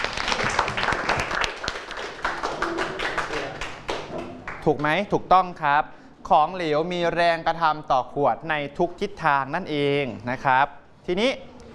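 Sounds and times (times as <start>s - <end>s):
group clapping for a classmate: 0.0s - 5.1s
speech: 4.7s - 11.5s.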